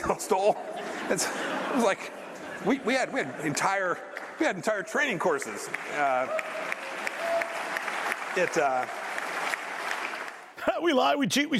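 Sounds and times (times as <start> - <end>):
laughter: 0.0 - 4.6
speech: 0.0 - 6.6, 8.4 - 9.0, 10.6 - 11.5
audience applause: 3.4 - 10.6.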